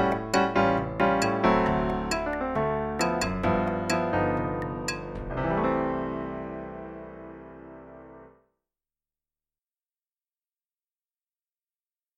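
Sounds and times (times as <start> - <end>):
bossa nova music with dynamics: 0.0 - 6.4.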